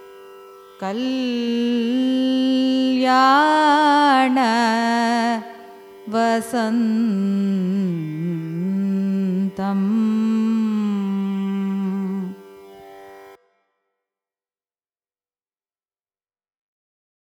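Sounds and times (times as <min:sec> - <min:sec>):
carnatic raga music: 0:00.0 - 0:13.8.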